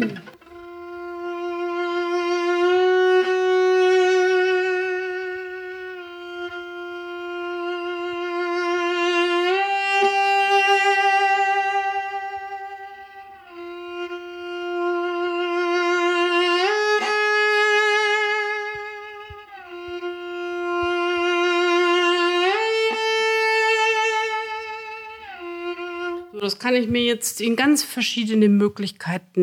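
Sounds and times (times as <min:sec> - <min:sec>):
bowed string instrument climbing in semitone steps with vibrato: 0:00.0 - 0:28.3
speech: 0:26.7 - 0:29.4.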